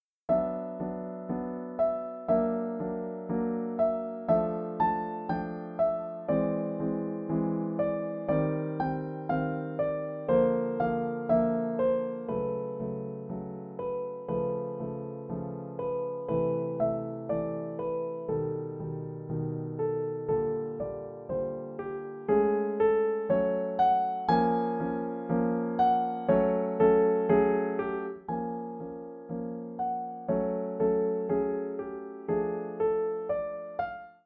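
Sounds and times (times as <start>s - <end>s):
piano: 0.0s - 34.2s.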